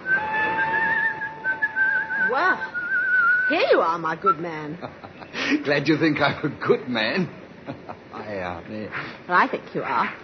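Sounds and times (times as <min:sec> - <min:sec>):
man whistling a tune: 0:00.0 - 0:03.7
speech: 0:03.5 - 0:10.2.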